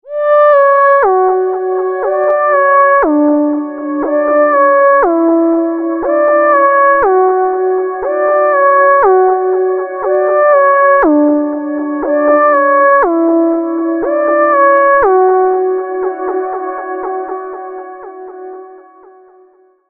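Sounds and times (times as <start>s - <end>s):
synth lead: 0.1s - 19.6s.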